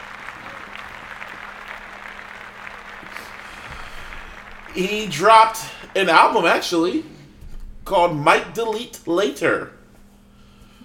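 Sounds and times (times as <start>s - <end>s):
group applauding: 0.0s - 7.2s
speech: 4.8s - 7.1s, 7.9s - 9.8s.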